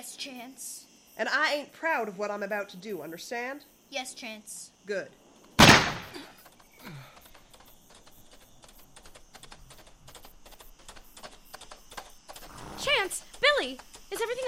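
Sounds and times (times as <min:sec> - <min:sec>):
speech: 0:00.2 - 0:06.0
gunfire: 0:05.6 - 0:06.3.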